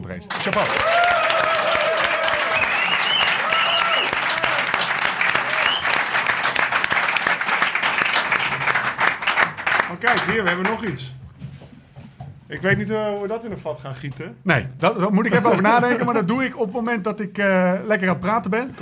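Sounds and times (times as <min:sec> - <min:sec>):
speech: 0:00.1 - 0:01.2, 0:10.0 - 0:11.2, 0:12.5 - 0:18.8
audience applause: 0:00.3 - 0:10.9
faint cheers and voices: 0:00.5 - 0:04.8.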